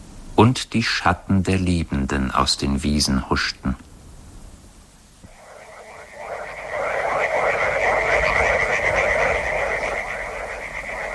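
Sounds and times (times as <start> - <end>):
speech: 0.4 - 3.9
frogs croaking in river backwaters: 5.3 - 11.1.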